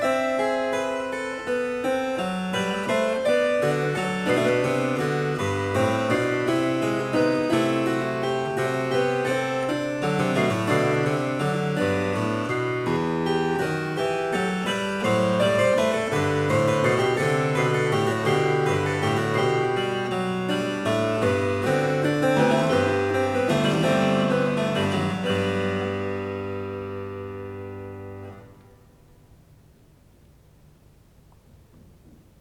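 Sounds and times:
harpsichord canon piece: 0.0 - 29.0.

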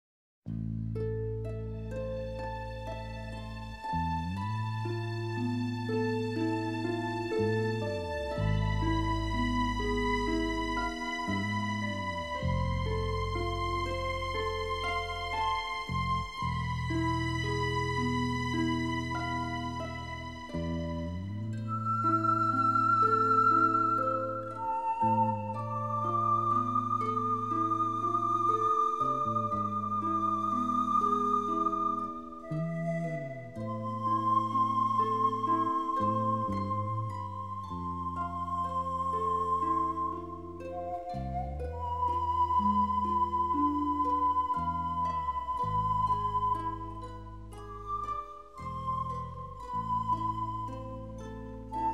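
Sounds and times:
pan flute music: 1.5 - 51.9.

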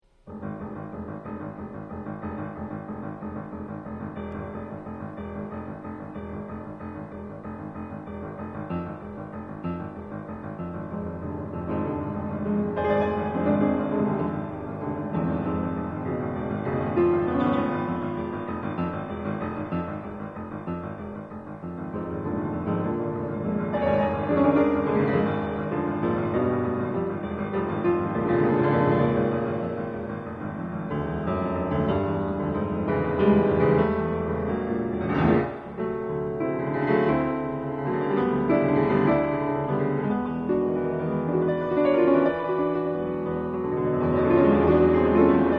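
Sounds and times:
Viennese waltz movement on piano: 0.0 - 45.5.

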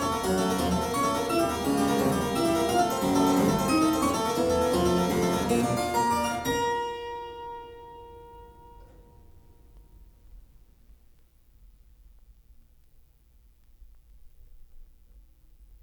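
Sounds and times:
clavier playing a gigue: 0.0 - 9.0.

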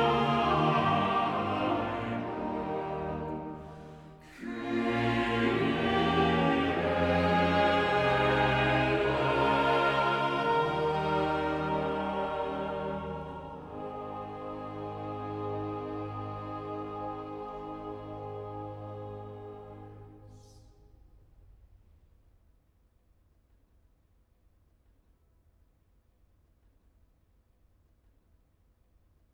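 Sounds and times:
choir singing cantatas: 0.0 - 20.8.

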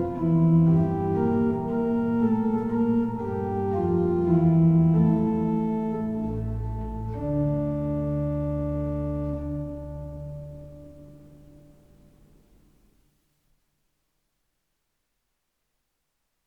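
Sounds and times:
organ playing chorale: 0.0 - 11.8.

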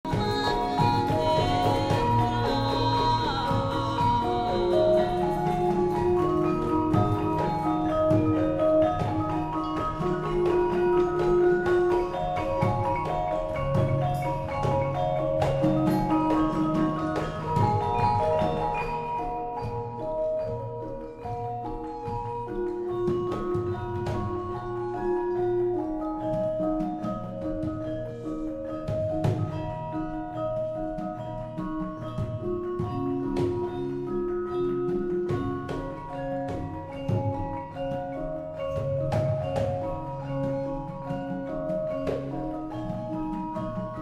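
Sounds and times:
Javanese gamelan music: 0.0 - 44.0.

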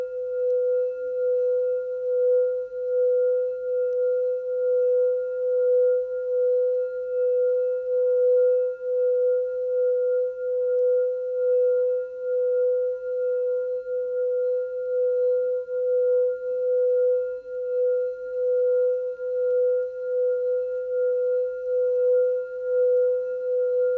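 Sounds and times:
crystal singing bowls: 0.0 - 23.9
meditation music: 0.0 - 23.9.

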